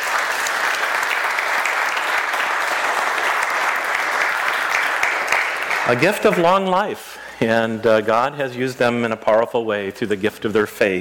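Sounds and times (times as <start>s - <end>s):
audience clapping: 0.0s - 6.8s
speech: 5.9s - 10.9s.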